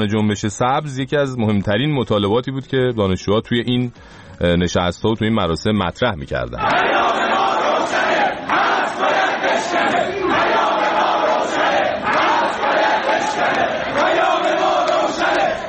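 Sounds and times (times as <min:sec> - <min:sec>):
speech: 0:00.0 - 0:07.0
crowd chanting protest slogans: 0:06.6 - 0:15.6.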